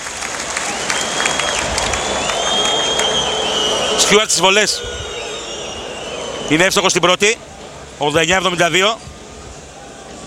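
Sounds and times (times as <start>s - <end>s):
arena crowd applauding a substituted player: 0.0s - 7.3s
speech: 4.1s - 5.1s, 6.5s - 9.1s.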